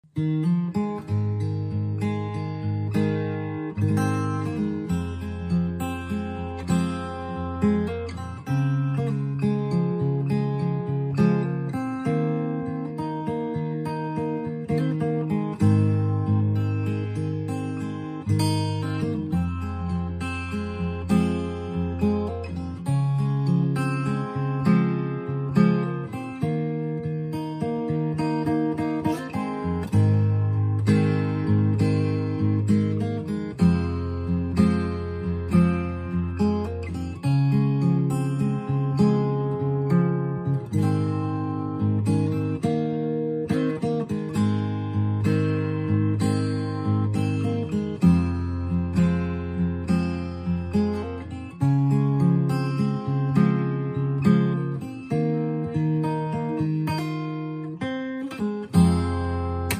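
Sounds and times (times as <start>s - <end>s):
guitarist playing: 0.0s - 59.7s.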